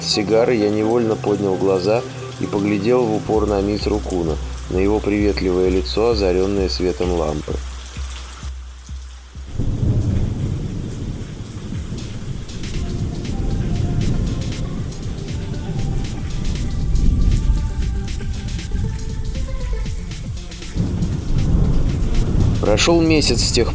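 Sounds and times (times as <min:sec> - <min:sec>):
steady rain pattering: 0:00.0 - 0:23.7
speech: 0:00.1 - 0:07.7, 0:22.8 - 0:23.7
deep rolling thunder: 0:09.4 - 0:23.7.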